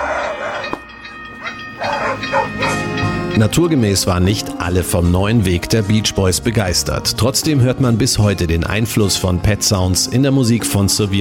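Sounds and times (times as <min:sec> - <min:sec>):
dogs barking: 0:00.0 - 0:00.8, 0:01.4 - 0:03.0
speech: 0:03.4 - 0:11.1.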